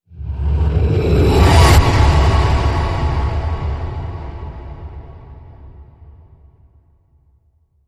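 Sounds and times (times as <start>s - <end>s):
whoosh: 0.1s - 6.2s.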